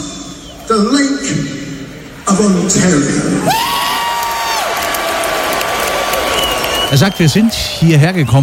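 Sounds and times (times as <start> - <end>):
speech: 0.7 - 1.6, 2.3 - 3.9, 6.9 - 8.4
concert crowd cheering: 3.4 - 8.4.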